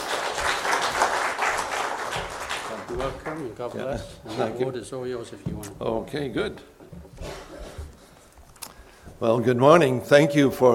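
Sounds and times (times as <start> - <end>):
audience applause: 0.0 - 3.7
speech: 3.0 - 6.8, 9.2 - 10.7.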